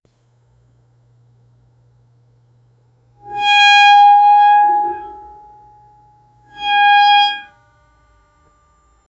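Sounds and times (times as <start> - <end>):
metal bending: 3.2 - 5.6, 6.5 - 7.5.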